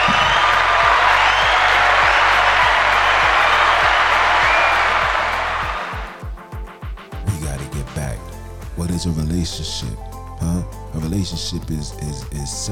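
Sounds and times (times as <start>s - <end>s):
audience applause: 0.0s - 6.3s
speech: 9.0s - 12.7s.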